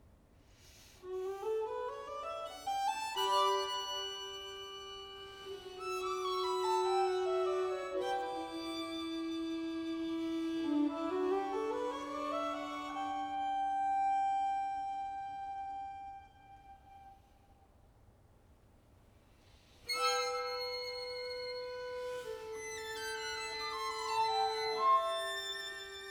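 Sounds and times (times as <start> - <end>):
string quartet: 1.2 - 15.9, 19.9 - 26.0.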